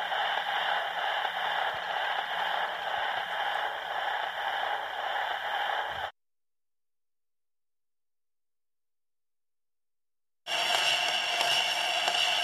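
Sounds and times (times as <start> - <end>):
needle on record: 0.0 - 6.1, 10.5 - 12.4.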